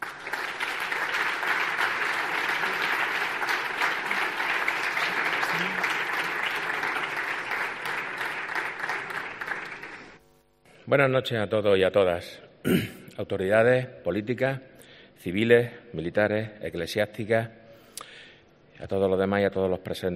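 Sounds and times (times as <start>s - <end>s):
sustained audience applause: 0.0s - 10.2s
speech: 10.9s - 17.6s, 18.8s - 20.1s.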